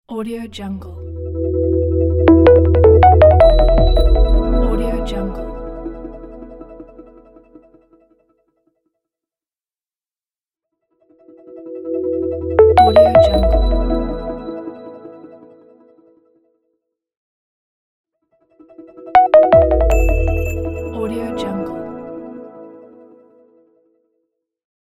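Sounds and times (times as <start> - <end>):
branding logo jingle: 1.1 - 7.4, 12.6 - 15.0, 19.2 - 22.5.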